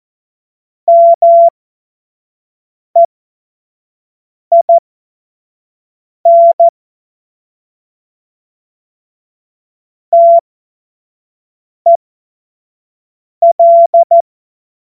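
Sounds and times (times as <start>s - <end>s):
Morse code course tones: 0.9s - 1.5s, 4.5s - 4.8s, 6.3s - 6.7s, 10.2s - 10.4s, 13.4s - 14.2s.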